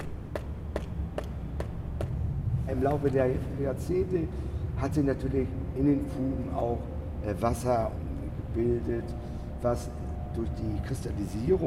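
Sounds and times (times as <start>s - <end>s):
knocking on old clinker brick sewer wall: 0.0s - 2.2s
steady low rumble: 0.0s - 11.6s
speech: 2.7s - 11.6s.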